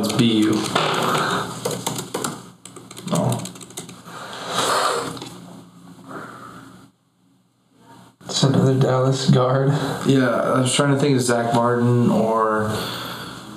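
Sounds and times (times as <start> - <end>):
typing an NFL player's name on a computer keyboard: 0.0 - 4.1
speech: 0.1 - 1.2, 8.7 - 13.0.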